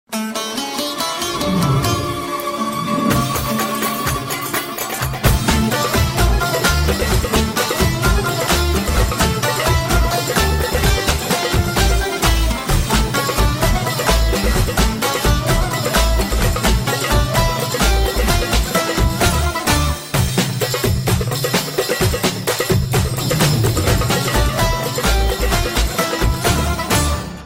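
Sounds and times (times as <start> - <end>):
Arabian instrumental music: 0.1 - 27.4.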